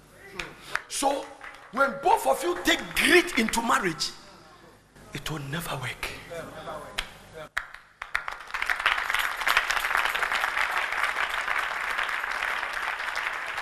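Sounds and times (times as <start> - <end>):
crowd applause: 0.7 - 4.1, 7.6 - 13.5
speech: 1.0 - 4.2, 5.2 - 6.8.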